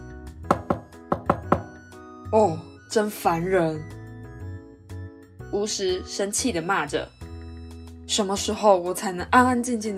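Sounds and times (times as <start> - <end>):
knocking on a door: 0.4 - 1.8
speech: 2.3 - 4.0, 5.5 - 7.1, 8.2 - 9.9.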